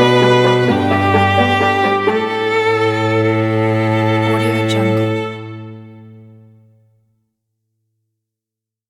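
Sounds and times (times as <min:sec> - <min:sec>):
dramatic intro music: 0:00.0 - 0:06.6.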